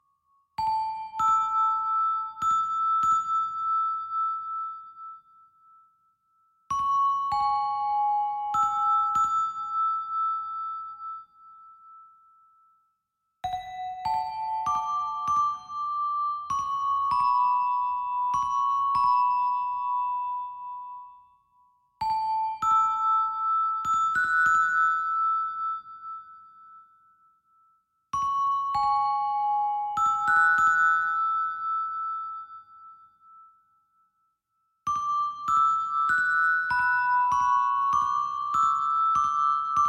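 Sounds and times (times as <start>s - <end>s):
music box: 0.0s - 39.8s.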